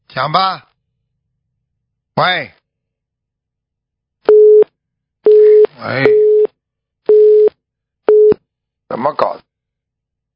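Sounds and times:
speech: 0.2s - 0.7s, 2.2s - 2.6s, 5.8s - 6.2s, 8.9s - 9.4s
telephone busy signal after call dropped: 4.3s - 4.6s, 5.3s - 6.5s, 7.1s - 7.5s.

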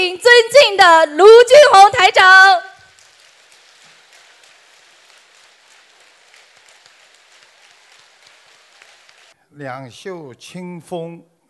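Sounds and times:
speech: 0.0s - 2.6s, 9.6s - 11.3s
audience applause: 2.8s - 9.4s.

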